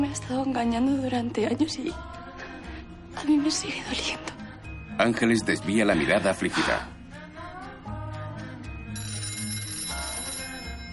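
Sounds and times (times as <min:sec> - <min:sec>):
speech: 0:00.1 - 0:02.2, 0:03.2 - 0:04.3, 0:05.0 - 0:07.0
old-style telephone bell ringing: 0:08.9 - 0:10.9.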